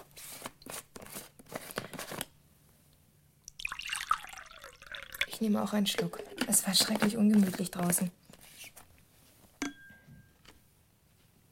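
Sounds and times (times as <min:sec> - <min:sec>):
milk poured from a thermos flask into a glass: 0:03.5 - 0:07.2
speech: 0:05.4 - 0:08.2.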